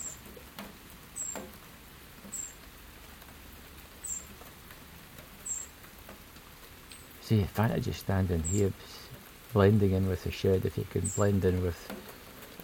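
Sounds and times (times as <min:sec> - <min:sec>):
soft patter: 0:00.0 - 0:12.6
wren chirping: 0:01.1 - 0:01.6, 0:02.2 - 0:02.6, 0:04.0 - 0:04.4, 0:05.4 - 0:05.8, 0:06.9 - 0:12.6
speech: 0:07.3 - 0:12.6.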